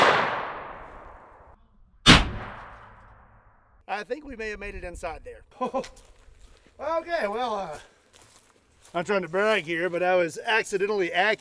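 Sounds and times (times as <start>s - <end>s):
rifle shot at an armored truck: 0.0s - 3.5s
speech: 3.9s - 6.2s, 6.8s - 7.9s, 8.9s - 11.3s.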